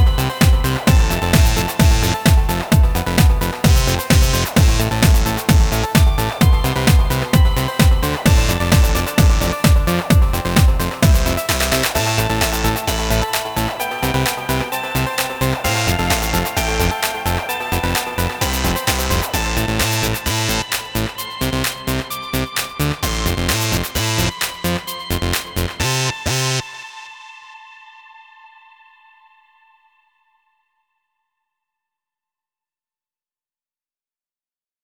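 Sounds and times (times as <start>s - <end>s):
instrumental music: 0.0s - 27.7s.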